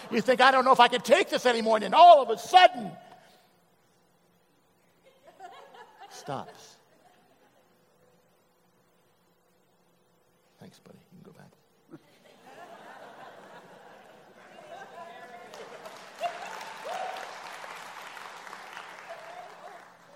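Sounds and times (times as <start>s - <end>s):
speech: 0.1s - 3.1s, 6.2s - 6.8s
laughter: 5.0s - 7.9s, 11.9s - 17.1s
audience applause: 15.3s - 20.1s.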